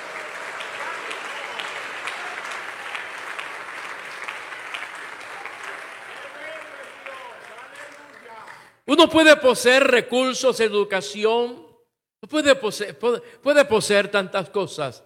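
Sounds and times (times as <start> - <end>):
audience applauding: 0.0 - 8.8
speech: 8.9 - 11.6, 12.3 - 15.0.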